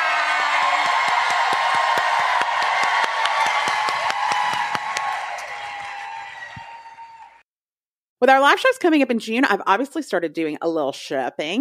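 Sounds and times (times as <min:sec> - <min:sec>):
audience applause: 0:00.0 - 0:07.4
speech: 0:08.2 - 0:11.6.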